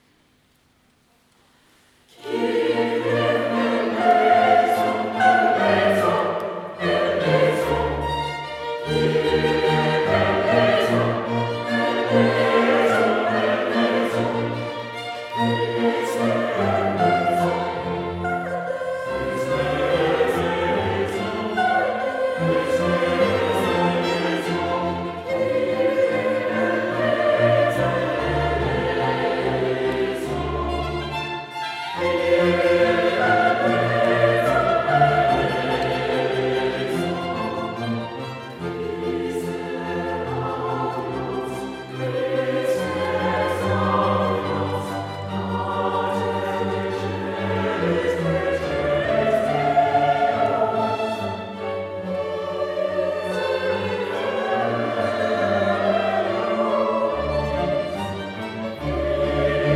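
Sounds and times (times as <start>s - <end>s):
choir singing a Kyrie: 2.0s - 59.7s.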